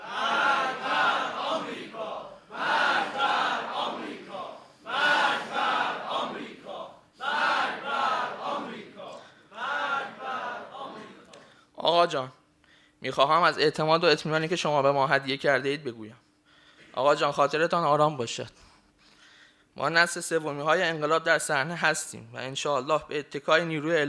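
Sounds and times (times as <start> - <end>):
crowd chanting death to America slogan: 0.0 - 11.4
speech: 12.0 - 12.4, 13.0 - 16.2, 17.0 - 18.7, 19.8 - 24.0.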